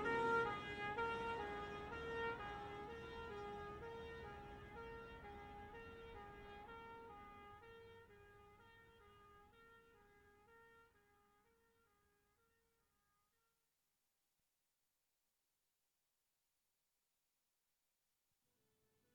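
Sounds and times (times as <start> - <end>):
fire engine passing right to left: 0.0 - 6.8.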